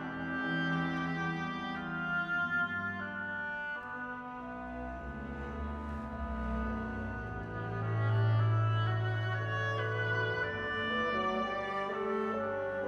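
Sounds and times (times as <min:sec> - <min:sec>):
oboe: 0:00.0 - 0:12.8.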